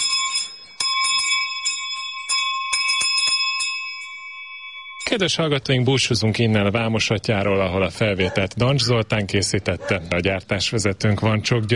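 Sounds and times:
sheep bell ringing: 0.0s - 6.6s
speech: 5.1s - 11.7s.

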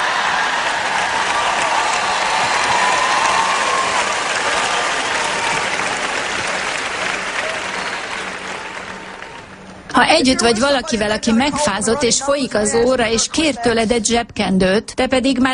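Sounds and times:
large crowd applauding: 0.0s - 9.9s
speech: 10.0s - 15.5s.

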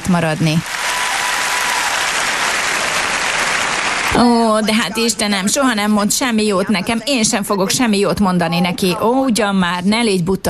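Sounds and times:
speech: 0.1s - 0.8s, 4.1s - 10.4s
audience applause: 0.6s - 4.6s.

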